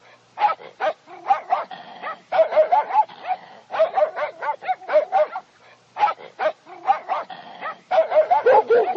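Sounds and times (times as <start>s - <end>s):
pack of dogs barking: 0.0s - 8.9s.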